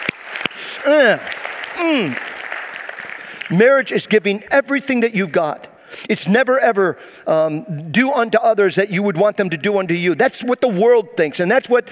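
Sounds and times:
audience clapping: 0:00.0 - 0:04.4
speech: 0:00.8 - 0:02.2, 0:03.5 - 0:11.9.

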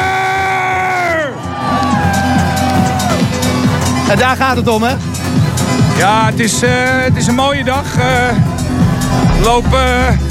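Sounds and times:
crowd cheering at a techno street parade: 0:00.0 - 0:04.1, 0:07.5 - 0:10.0
speech: 0:04.1 - 0:05.4, 0:06.0 - 0:10.2.

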